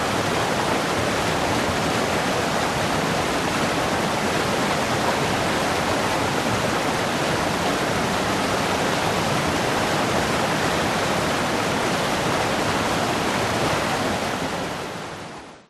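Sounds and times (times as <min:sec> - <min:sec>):
river flowing over rocks in Vietnam: 0:00.0 - 0:15.6.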